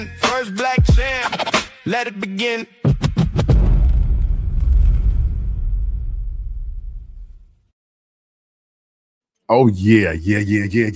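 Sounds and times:
speech: 0:00.0 - 0:01.1, 0:01.8 - 0:02.8, 0:09.5 - 0:10.9
explosion sound effect: 0:03.4 - 0:07.7.

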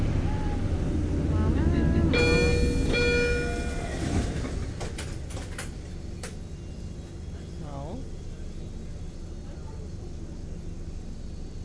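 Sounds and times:
subway train low rumble at a Boston station: 0:00.0 - 0:11.6
subway train door closing electronic tone pattern: 0:02.2 - 0:04.0.

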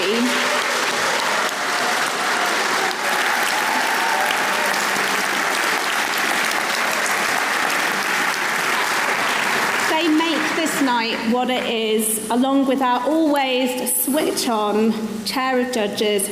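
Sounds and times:
sustained applause from a large audience: 0:00.0 - 0:11.1
speech: 0:11.0 - 0:16.3.

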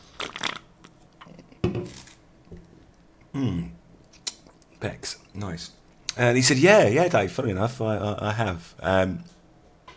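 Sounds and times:
person sipping a drink, slurping and swallowing: 0:00.0 - 0:01.6
speech: 0:03.4 - 0:03.8, 0:04.8 - 0:09.3.

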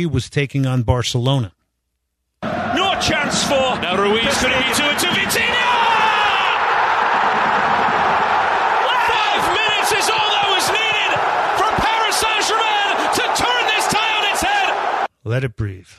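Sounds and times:
speech: 0:00.0 - 0:01.6, 0:02.4 - 0:05.9, 0:15.3 - 0:15.9
stadium crowd cheering: 0:02.4 - 0:15.1
excited commentator: 0:02.5 - 0:15.4.

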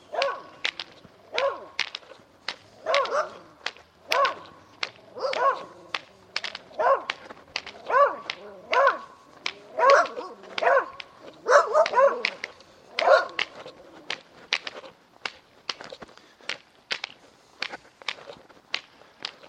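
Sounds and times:
dogs barking: 0:00.0 - 0:01.9, 0:02.7 - 0:14.2.

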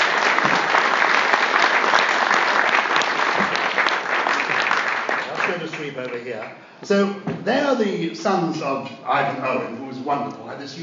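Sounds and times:
applause: 0:00.0 - 0:06.6
speech: 0:05.8 - 0:10.8.

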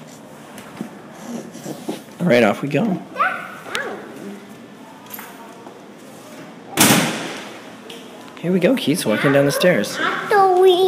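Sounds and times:
speech: 0:02.2 - 0:03.2, 0:08.4 - 0:10.8
door slamming shut: 0:06.8 - 0:07.4.

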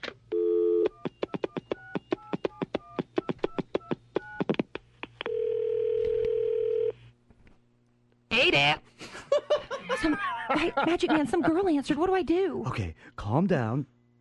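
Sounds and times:
phone dial tone: 0:00.3 - 0:04.5, 0:05.2 - 0:07.0
keypad tones: 0:00.7 - 0:04.5
laughter: 0:09.1 - 0:11.6
speech: 0:10.8 - 0:14.0.

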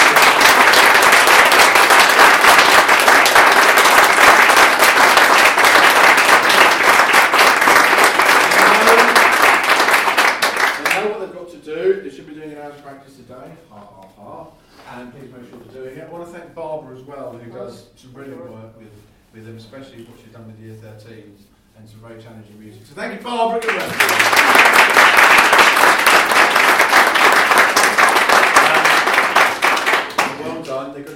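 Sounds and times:
applause: 0:00.0 - 0:11.2, 0:23.5 - 0:31.1
speech: 0:19.4 - 0:26.1.

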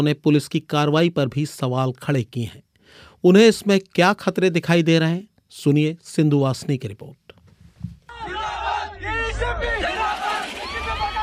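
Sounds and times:
speech: 0:00.0 - 0:07.2
large crowd in Hyderabad chanting zindabad and cheering in celebration: 0:08.1 - 0:11.2.

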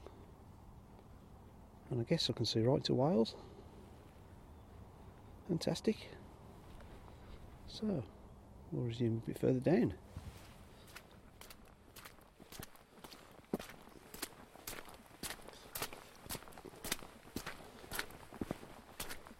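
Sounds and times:
speech: 0:01.9 - 0:03.5, 0:05.5 - 0:06.2, 0:07.7 - 0:10.0
footsteps squelching along an extremely muddy path on the Wrekin: 0:10.4 - 0:19.3.

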